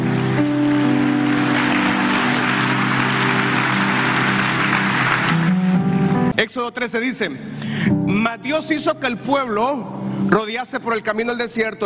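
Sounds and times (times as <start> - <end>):
crowd clapping: 0.0 - 6.2
keyboard or organ tones: 0.0 - 6.4
speech: 6.6 - 11.8.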